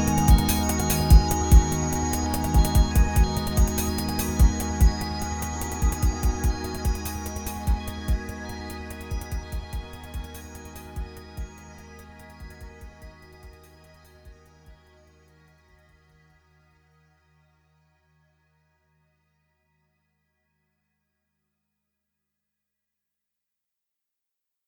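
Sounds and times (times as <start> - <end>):
rhythmic Waldorf Quantum synthesizer: 0.0 - 14.4.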